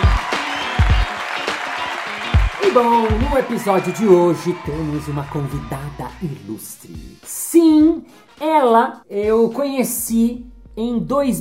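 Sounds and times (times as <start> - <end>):
applause: 0.0 - 6.2
speech: 2.6 - 11.4.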